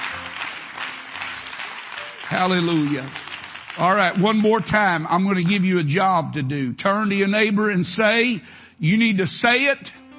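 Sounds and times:
audience clapping hands: 0.0s - 6.0s
speech: 2.3s - 3.2s, 3.8s - 10.0s.

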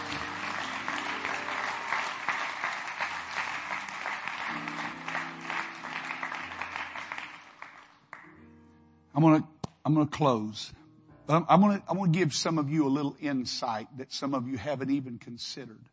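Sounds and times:
people clapping hands: 0.0s - 8.4s
speech: 9.2s - 15.9s.

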